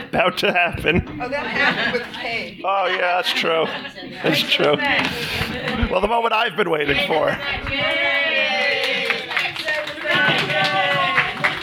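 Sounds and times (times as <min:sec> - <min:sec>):
laughter: 0:00.0 - 0:06.3, 0:06.9 - 0:11.6
speech: 0:00.1 - 0:08.2
audience applause: 0:07.6 - 0:11.6.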